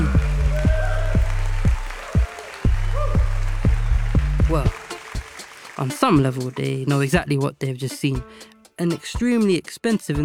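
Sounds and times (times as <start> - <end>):
crowd cheering and applauding wildly: 0.0 - 7.2
speech: 5.8 - 10.2.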